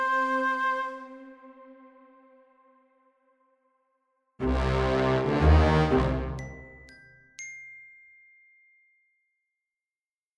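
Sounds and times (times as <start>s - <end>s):
varied melodic motif: 4.4s - 7.9s.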